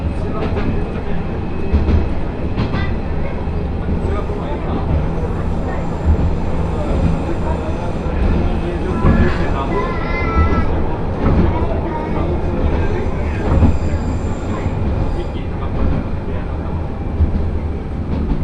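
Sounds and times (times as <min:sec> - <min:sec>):
passengers talking in a crowded one-car railbus: 0:00.0 - 0:18.4
railbus engine and wheel rumble: 0:00.0 - 0:18.4.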